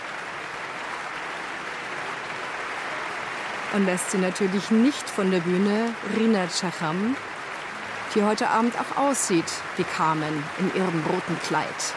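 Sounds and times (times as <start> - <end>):
sustained applause from a large concert audience: 0.0 - 11.9
speech: 3.7 - 7.3, 8.1 - 11.9.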